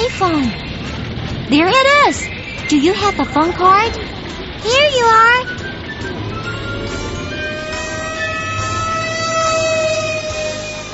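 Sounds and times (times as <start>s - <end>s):
engine and traffic rumble: 0.0s - 10.9s
fire truck sirens wailing: 0.0s - 10.9s
speech: 0.2s - 0.6s, 1.5s - 6.2s.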